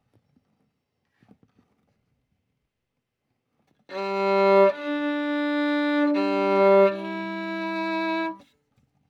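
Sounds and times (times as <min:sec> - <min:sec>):
violin: 0:03.9 - 0:08.4.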